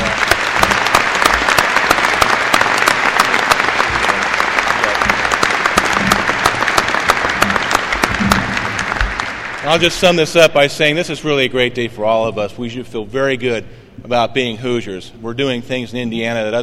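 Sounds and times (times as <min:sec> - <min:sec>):
audience applause: 0:00.0 - 0:10.2
speech: 0:09.7 - 0:16.6.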